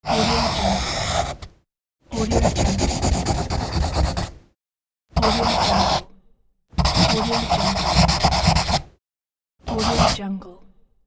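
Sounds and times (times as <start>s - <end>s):
pencil scribbling and drawing: 0.0s - 1.5s, 2.1s - 4.4s, 5.2s - 6.0s, 6.8s - 8.9s, 9.7s - 10.2s.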